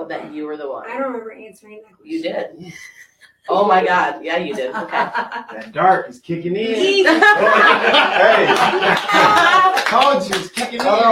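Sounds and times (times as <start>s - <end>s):
speech: 0.1s - 11.1s
laughter: 4.3s - 5.9s, 6.7s - 11.1s
applause: 8.2s - 11.1s.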